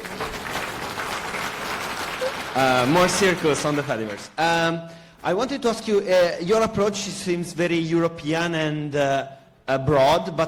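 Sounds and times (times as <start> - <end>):
audience applause: 0.0 - 4.4
speech: 2.6 - 10.4.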